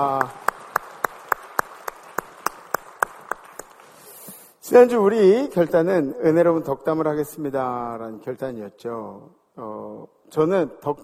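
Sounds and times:
speech: 0.0 - 0.4, 4.7 - 11.0
applause: 0.0 - 4.3.

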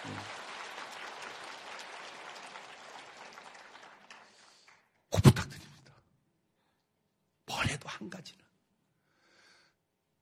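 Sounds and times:
crowd applause: 0.0 - 5.0
speech: 8.0 - 8.5.

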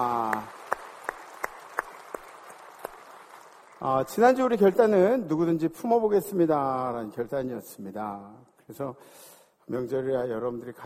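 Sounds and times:
audience clapping in rhythm in a large room: 0.0 - 5.6
speech: 3.8 - 10.8.

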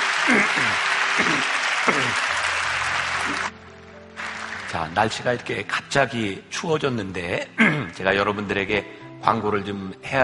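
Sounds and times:
crowd applauding: 0.0 - 5.6
speech: 0.3 - 2.5, 4.7 - 10.2.

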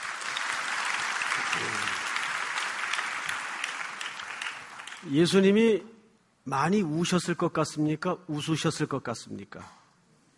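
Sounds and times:
audience applause: 0.0 - 5.0
speech: 1.4 - 2.0, 5.0 - 9.8.

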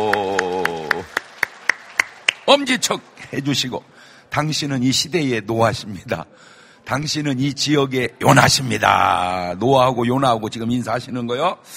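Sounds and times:
church congregation clapping enthusiastically: 0.0 - 3.8
speech: 2.5 - 11.7.

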